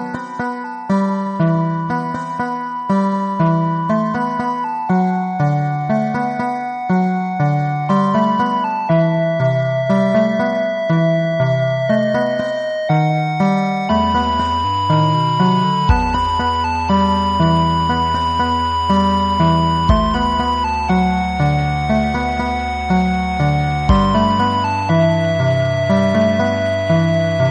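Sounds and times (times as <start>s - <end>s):
romantic music: 0.2s - 27.4s.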